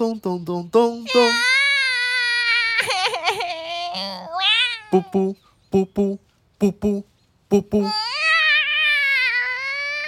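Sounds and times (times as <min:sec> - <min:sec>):
speech: 0:00.0 - 0:01.6, 0:04.0 - 0:08.1
baby crying: 0:01.1 - 0:05.1, 0:07.8 - 0:10.0.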